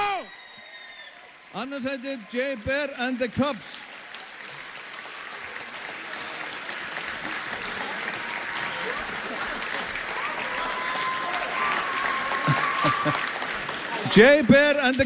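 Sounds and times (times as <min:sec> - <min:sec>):
whistle: 0:00.0 - 0:01.2
audience applause for a band: 0:00.0 - 0:15.0
speech: 0:01.5 - 0:03.9, 0:14.1 - 0:15.0
laughter: 0:07.2 - 0:10.8, 0:12.0 - 0:14.6.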